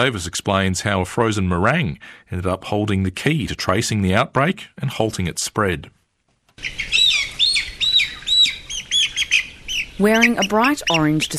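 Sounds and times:
speech: 0.0s - 6.0s, 6.6s - 7.0s, 10.0s - 11.3s
young hens chirping and peeping in a shed: 6.6s - 11.3s.

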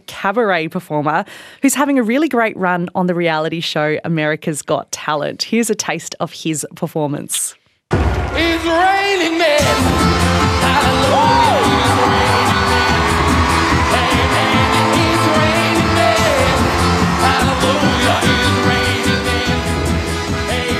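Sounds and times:
speech: 0.2s - 11.6s
audience cheering in auditorium: 8.0s - 20.7s.

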